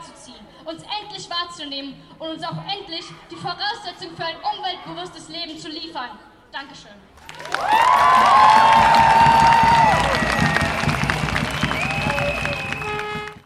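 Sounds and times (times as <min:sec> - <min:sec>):
speech: 0:00.7 - 0:08.8
crowd applause and cheering: 0:07.2 - 0:13.4.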